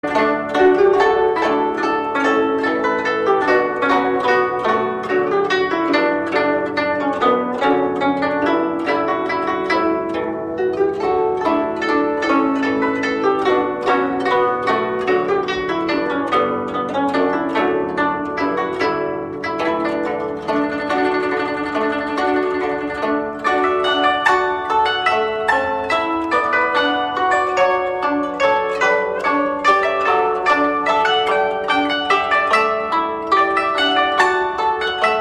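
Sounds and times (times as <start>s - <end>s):
guzheng cover: 0.0s - 35.2s.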